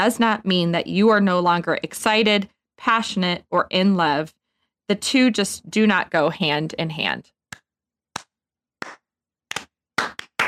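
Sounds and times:
speech: 0.0s - 7.4s
slow hand clapping: 8.2s - 10.4s.

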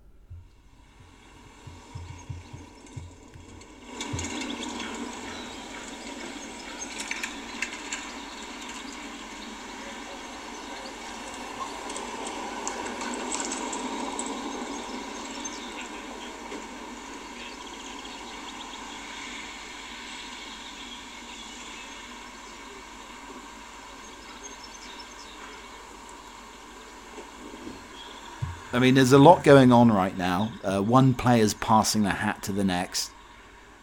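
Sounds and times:
airy noise at an English village cricket match: 0.0s - 33.8s
faint scattered knocks at an English village cricket match: 0.3s - 4.9s
speech: 28.7s - 33.2s.

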